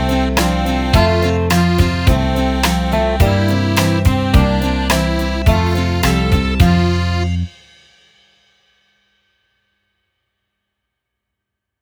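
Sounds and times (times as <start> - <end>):
Polish folk instrument: 0.0 - 7.6.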